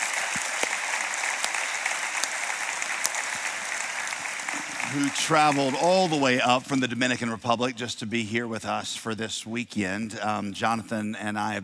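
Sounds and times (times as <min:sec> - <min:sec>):
audience applause welcoming a guest: 0:00.0 - 0:06.9
speech: 0:04.9 - 0:11.6.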